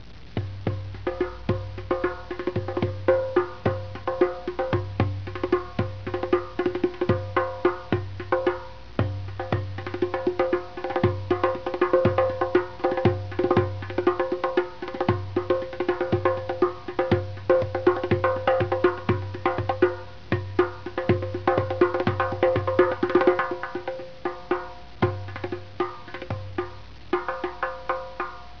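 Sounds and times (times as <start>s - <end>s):
drum: 0.3s - 28.5s.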